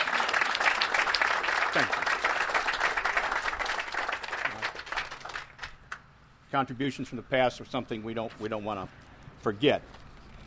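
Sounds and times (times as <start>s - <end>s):
crowd round of applause: 0.0s - 5.8s
speech: 1.8s - 2.0s, 6.5s - 10.0s.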